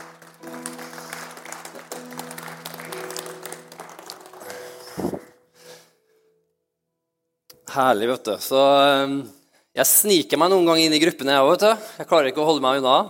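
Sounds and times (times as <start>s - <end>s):
crowd applauding: 0.0s - 5.4s
speech: 7.8s - 13.0s.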